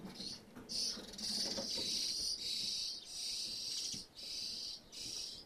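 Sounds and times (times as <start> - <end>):
birds giving hissing rasping feeding calls in a roof space: 0.2 - 5.4.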